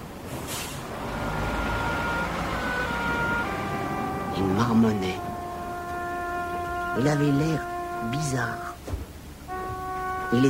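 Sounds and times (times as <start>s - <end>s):
bus engine rumbling, pulling away: 0.0s - 10.4s
bus air brakes releasing: 0.3s - 0.9s
speech: 4.4s - 5.2s, 6.9s - 9.1s, 10.3s - 10.4s.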